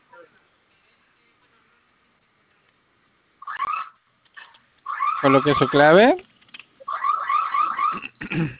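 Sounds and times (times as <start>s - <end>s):
alarm system siren sounding: 4.9s - 6.1s, 6.9s - 8.1s
speech: 5.2s - 6.3s.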